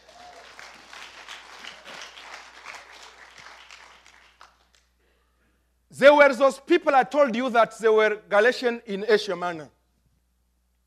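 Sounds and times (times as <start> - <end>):
audience applause: 0.0 - 4.8
speech: 6.0 - 9.8.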